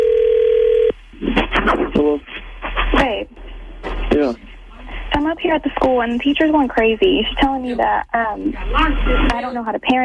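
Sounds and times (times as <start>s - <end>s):
steady telephone tone: 0.0s - 0.9s
voices: 1.2s - 10.0s
speech: 5.5s - 10.0s.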